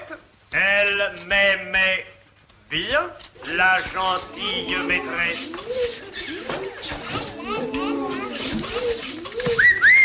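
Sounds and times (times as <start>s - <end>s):
speech: 0.6s - 2.0s, 2.7s - 7.8s
person whistling in a classroom: 9.6s - 10.0s.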